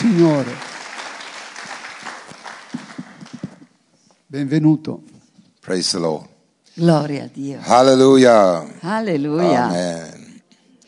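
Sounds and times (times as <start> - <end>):
church congregation applauding during a worship service: 0.0 - 3.8
speech: 0.2 - 0.7, 4.3 - 5.1, 5.7 - 10.1.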